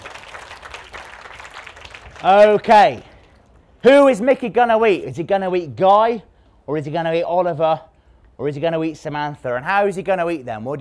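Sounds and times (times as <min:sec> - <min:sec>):
children clapping: 0:00.0 - 0:03.4
speech: 0:02.2 - 0:03.1, 0:03.8 - 0:10.8.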